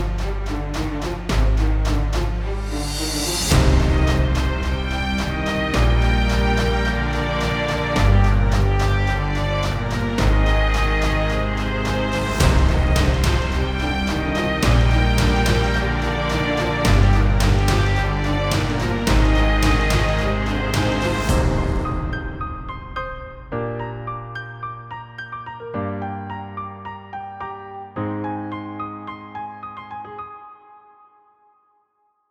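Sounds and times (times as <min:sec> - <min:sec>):
dramatic cinematic music: 0:00.0 - 0:23.8.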